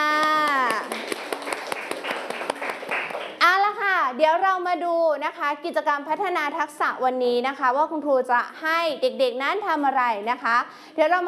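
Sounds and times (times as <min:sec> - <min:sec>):
children clapping: 0:00.0 - 0:03.4
speech: 0:04.2 - 0:11.2.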